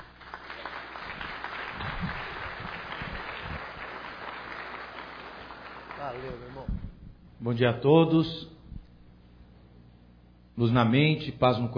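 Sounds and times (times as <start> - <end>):
audience applause: 0.0 - 6.7
speech: 7.4 - 8.5, 10.6 - 11.7.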